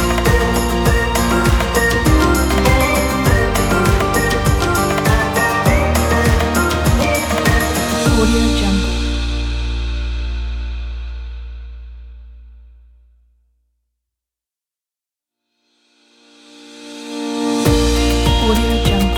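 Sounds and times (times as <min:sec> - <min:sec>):
uplifting folk music: 0:00.0 - 0:10.4, 0:17.7 - 0:19.1.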